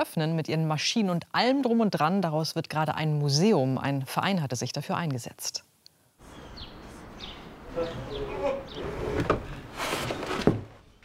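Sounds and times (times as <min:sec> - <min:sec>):
speech: 0:00.0 - 0:05.7, 0:07.7 - 0:09.4
old wooden door creaking: 0:07.6 - 0:11.0.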